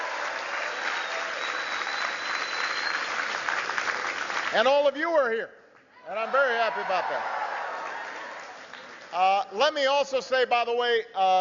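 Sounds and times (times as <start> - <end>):
large audience clapping: 0.0 - 4.9, 6.8 - 9.5
speech: 4.5 - 7.4, 9.1 - 11.4.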